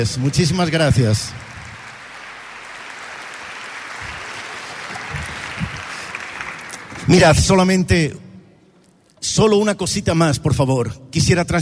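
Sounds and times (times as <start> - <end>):
speech: 0.0 - 1.5, 7.1 - 8.2, 9.2 - 11.5
crowd applauding: 0.0 - 7.6.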